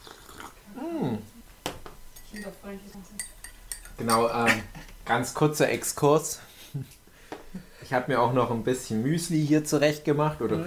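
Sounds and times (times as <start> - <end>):
cocoa mug clinking on a surface: 2.2 - 2.6, 3.2 - 4.6
speech: 2.4 - 3.4, 4.0 - 7.0, 7.8 - 10.6.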